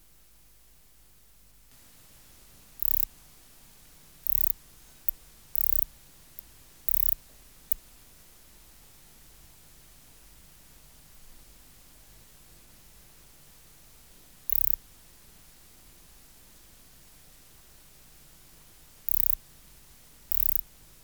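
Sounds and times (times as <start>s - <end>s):
Ancistrura nigrovittata bush-cricket stridulation: 2.8s - 3.1s, 4.2s - 5.9s, 6.9s - 7.2s, 14.5s - 14.8s, 19.1s - 19.4s, 20.3s - 20.6s.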